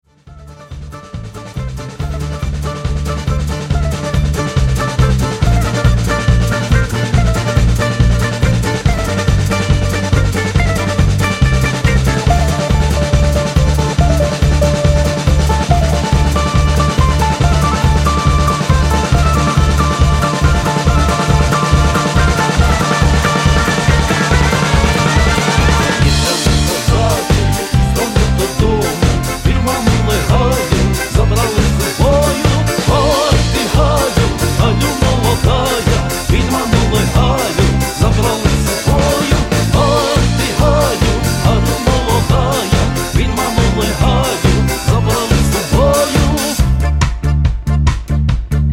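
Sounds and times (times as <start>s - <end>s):
balalaika techno trance music: 0.0s - 48.7s.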